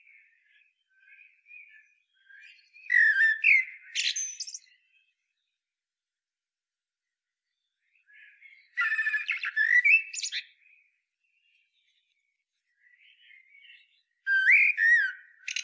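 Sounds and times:
common blackbird singing: 0:02.4 - 0:04.8, 0:08.8 - 0:10.5, 0:13.1 - 0:15.6.

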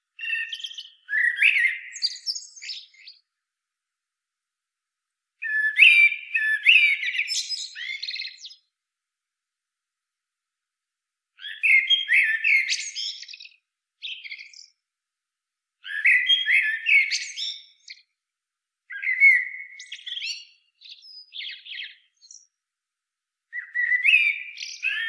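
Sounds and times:
Common blackbird song phrases: 0:00.1 - 0:03.4, 0:05.4 - 0:08.8, 0:11.4 - 0:14.8, 0:15.8 - 0:18.2, 0:18.9 - 0:22.6, 0:23.5 - 0:25.0.

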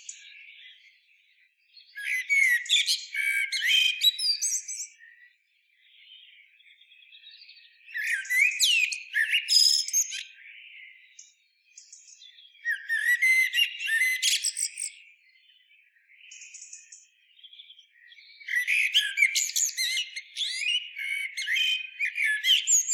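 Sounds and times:
Eurasian blackbird song: 0:00.0 - 0:22.9.

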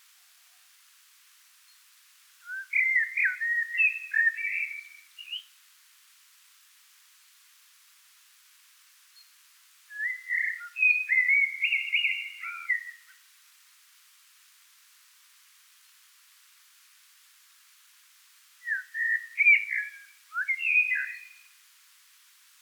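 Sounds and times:
faint hiss: 0:00.0 - 0:22.6
Eurasian blackbird fluty whistles: 0:02.4 - 0:05.5, 0:09.9 - 0:13.1, 0:18.6 - 0:21.5.

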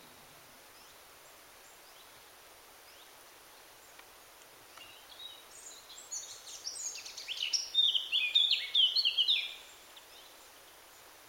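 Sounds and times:
Eurasian blackcap song: 0:04.7 - 0:10.3.

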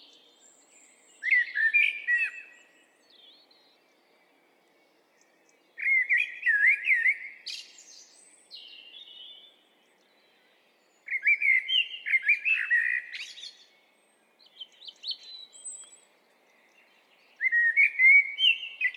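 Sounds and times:
Eurasian blackbird singing: 0:00.0 - 0:18.9.

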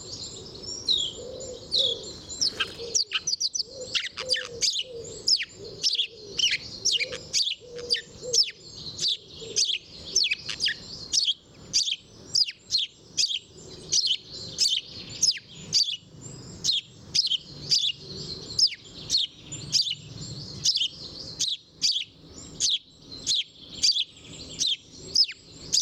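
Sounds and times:
dove cooing: 0:00.0 - 0:10.8, 0:17.2 - 0:19.9
house sparrow chirping: 0:00.0 - 0:25.8
other small birds twittering: 0:00.0 - 0:25.8.

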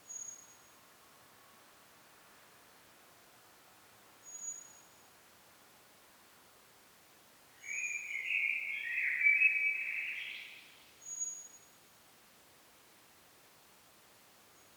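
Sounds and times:
common blackbird whistle call: 0:07.6 - 0:10.6.

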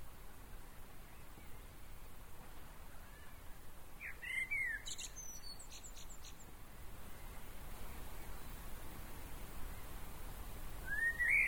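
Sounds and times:
steady hiss: 0:00.0 - 0:11.4
common blackbird phrase: 0:04.0 - 0:05.6, 0:10.8 - 0:11.4.

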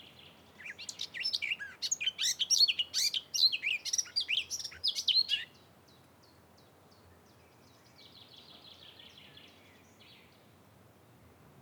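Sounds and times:
Eurasian blackcap warbling song: 0:00.6 - 0:05.6.

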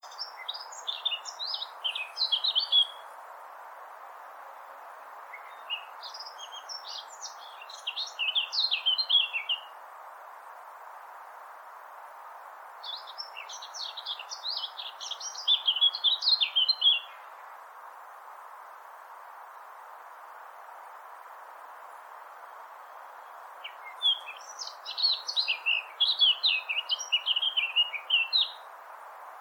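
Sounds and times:
Eurasian blackcap song: 0:00.0 - 0:03.4, 0:05.2 - 0:09.8, 0:12.8 - 0:17.6, 0:21.8 - 0:29.4
background hiss: 0:00.0 - 0:29.4.

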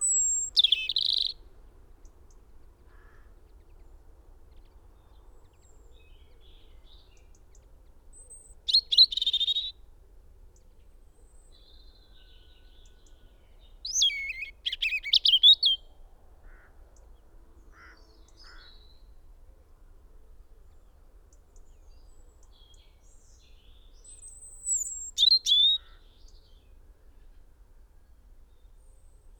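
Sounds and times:
European robin song: 0:00.0 - 0:02.8, 0:04.4 - 0:09.8, 0:11.5 - 0:15.9, 0:21.3 - 0:26.7.

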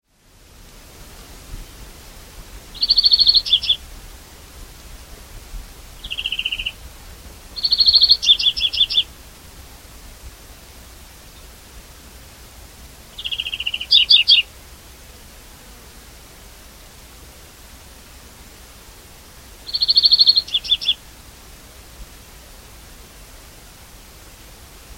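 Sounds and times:
European greenfinch trilling and chirping: 0:02.8 - 0:03.8, 0:06.0 - 0:06.8, 0:07.6 - 0:09.1, 0:13.2 - 0:14.5, 0:19.7 - 0:21.0.

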